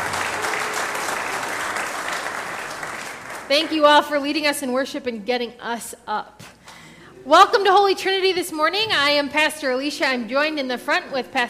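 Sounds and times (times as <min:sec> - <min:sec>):
audience applause: 0:00.0 - 0:03.7
speech: 0:03.5 - 0:06.5, 0:07.2 - 0:11.4.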